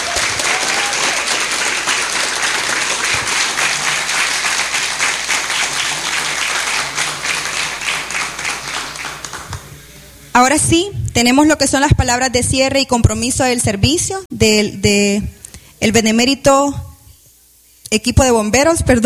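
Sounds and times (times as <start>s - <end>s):
audience applause: 0.0s - 9.9s
speech: 10.4s - 16.9s, 17.9s - 19.0s.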